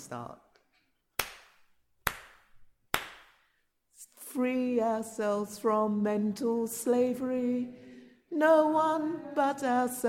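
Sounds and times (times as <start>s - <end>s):
speech: 0.1s - 0.5s, 4.3s - 10.0s
hand claps: 1.2s - 3.5s.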